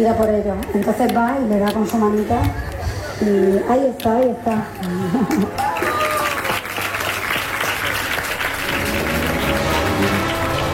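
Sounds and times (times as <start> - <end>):
speech: 0.0 - 5.8
applause: 5.5 - 10.7.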